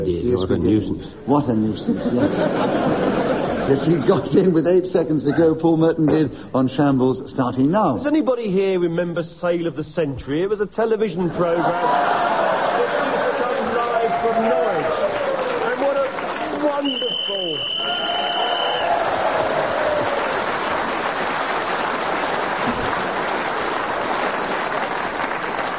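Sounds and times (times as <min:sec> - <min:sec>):
speech: 0:00.0 - 0:12.6
laughter: 0:01.7 - 0:04.6, 0:11.2 - 0:16.9
studio audience cheering: 0:11.6 - 0:25.7.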